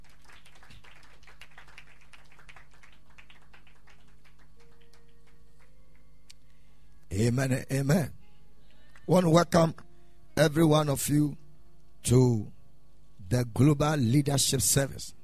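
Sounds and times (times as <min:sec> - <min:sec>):
audience clapping hands: 0:00.0 - 0:06.1
speech: 0:07.2 - 0:08.2, 0:09.1 - 0:09.8, 0:10.4 - 0:11.4, 0:12.0 - 0:12.6, 0:13.3 - 0:15.2.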